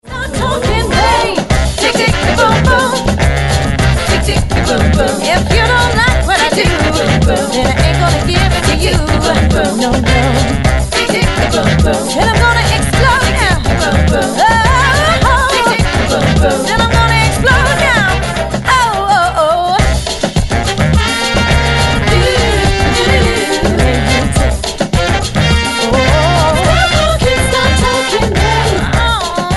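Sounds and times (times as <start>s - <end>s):
samba music: 0.0s - 29.5s.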